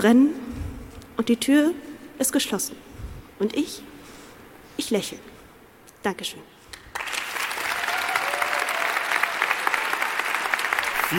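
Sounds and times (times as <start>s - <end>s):
speech: 0.0s - 0.4s, 1.2s - 3.9s, 4.8s - 5.3s, 6.0s - 6.5s
audience applause: 6.9s - 11.1s.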